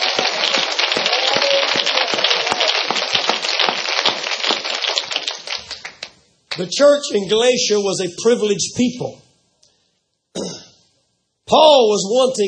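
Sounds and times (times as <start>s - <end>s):
crowd clapping: 0.0s - 6.7s
speech: 6.6s - 9.2s, 11.5s - 12.4s.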